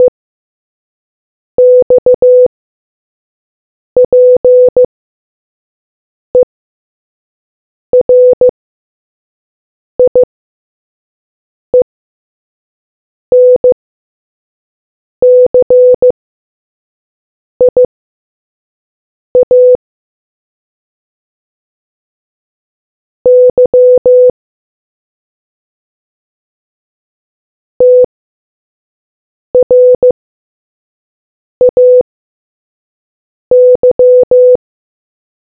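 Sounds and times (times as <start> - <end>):
morse code beeps: 1.6 - 2.5, 4.0 - 4.9, 8.0 - 8.5, 10.0 - 10.3, 13.3 - 13.8, 15.2 - 16.1, 17.7 - 17.9, 19.4 - 19.8, 23.3 - 24.3, 27.8 - 28.1, 29.6 - 30.2, 31.6 - 32.0, 33.5 - 34.6.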